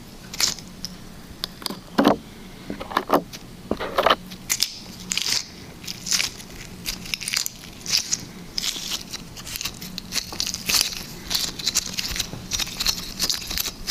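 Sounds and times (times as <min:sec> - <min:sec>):
faint low hum: 0:00.0 - 0:13.8
liquid slime squished and pulled: 0:04.4 - 0:13.8.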